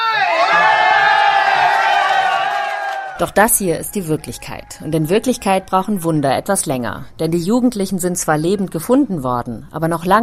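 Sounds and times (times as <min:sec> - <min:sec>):
rescue teams cheering and shouting after finding cave survivors: 0:00.0 - 0:05.6
speech: 0:03.2 - 0:10.2.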